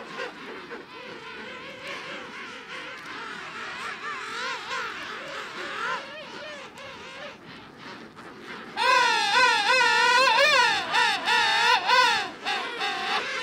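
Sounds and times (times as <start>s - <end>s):
king penguin colony calling in Antarctica: 0.0s - 13.4s.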